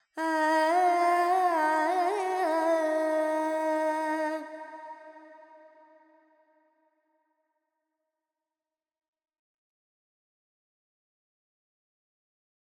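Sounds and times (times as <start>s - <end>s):
Carnatic woman singing alaps in Phrygian mode: 0.2s - 5.3s.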